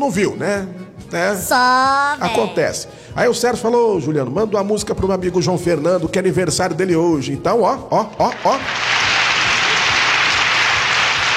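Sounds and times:
speech: 0.0s - 8.9s
applause: 8.2s - 11.3s.

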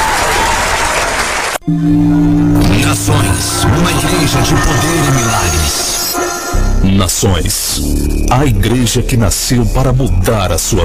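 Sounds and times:
crowd clapping loudly: 0.0s - 1.6s
sustained low synth chord: 1.6s - 8.7s
speech: 1.7s - 2.4s, 6.8s - 10.8s.

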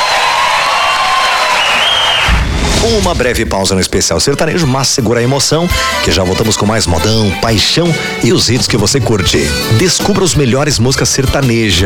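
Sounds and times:
crowd applause at a recorded sertanejo concert: 0.0s - 2.6s
speech: 2.9s - 11.8s.

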